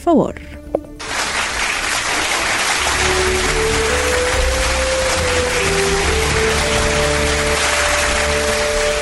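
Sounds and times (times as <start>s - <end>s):
speech: 0.0s - 0.6s
applause: 1.0s - 8.9s.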